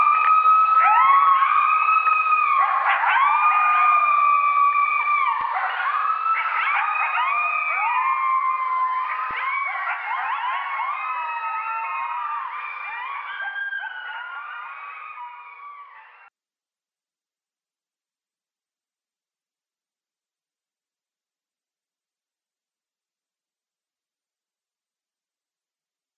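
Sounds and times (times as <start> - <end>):
coyotes howling and yipping in a group chorus: 0.0 - 16.3.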